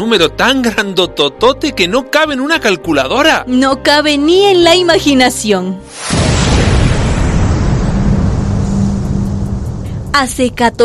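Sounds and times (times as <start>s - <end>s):
speech: 0.0s - 6.3s, 10.1s - 10.8s
big bang explosion sound effect: 5.9s - 10.2s.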